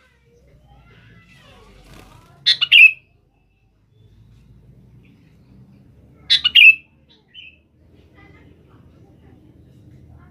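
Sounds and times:
sooty-headed bulbul calling: 2.5 - 3.1, 6.3 - 7.6.

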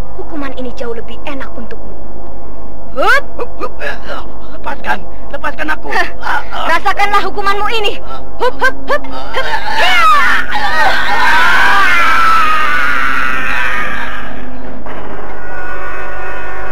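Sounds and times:
speech: 0.2 - 1.8, 3.0 - 12.3
long echoing scream at Bukit Tengkorak: 9.4 - 16.7.

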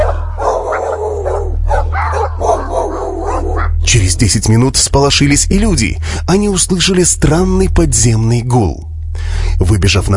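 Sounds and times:
village dogs howling: 0.0 - 3.8
speech: 3.9 - 10.1.

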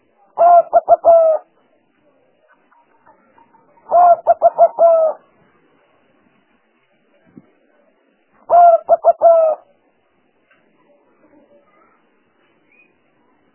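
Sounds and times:
spotted dove cooing: 0.4 - 1.5, 3.8 - 5.2, 8.5 - 9.6.

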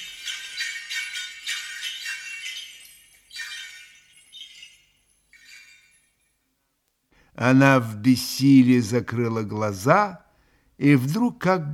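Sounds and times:
small bell jingling in the distance: 0.0 - 6.6
speech: 7.4 - 10.2, 10.8 - 11.7.

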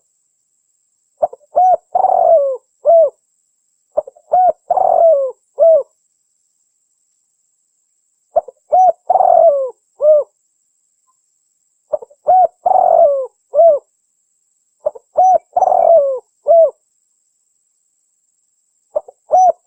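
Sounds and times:
spotted dove cooing: 1.2 - 3.2, 4.0 - 5.9, 8.4 - 10.4, 11.9 - 13.9, 14.8 - 16.8, 19.0 - 19.6.

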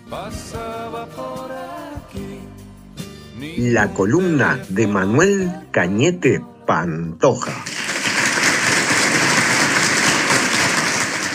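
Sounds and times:
speech: 0.1 - 2.6, 3.4 - 7.7
crowd applause ending a presentation: 7.5 - 11.3.

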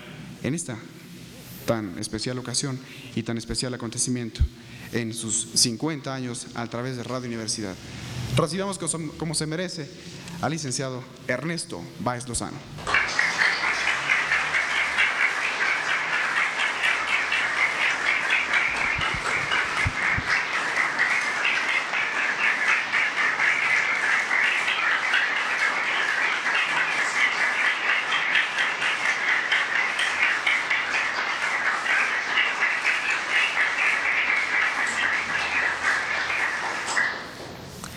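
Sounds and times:
speech: 0.4 - 1.0, 1.7 - 12.9
audience applause: 12.8 - 37.4.

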